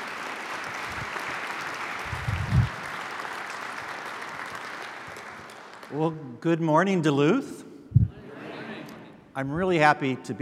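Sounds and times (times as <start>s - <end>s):
audience applauding: 0.0s - 6.0s
low thumps: 2.1s - 2.8s, 7.9s - 8.1s
speech: 5.9s - 7.6s, 9.4s - 10.4s.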